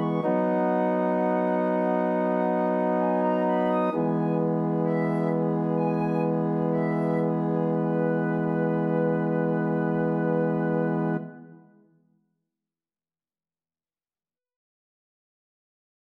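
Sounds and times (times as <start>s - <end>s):
flute playing a romantic piece: 0.0s - 11.8s.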